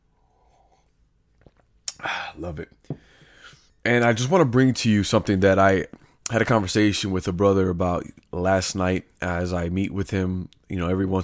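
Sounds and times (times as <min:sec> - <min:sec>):
person sipping coffee: 0:00.5 - 0:02.3
gulp: 0:01.3 - 0:03.4
speech: 0:02.0 - 0:03.2, 0:03.8 - 0:11.2.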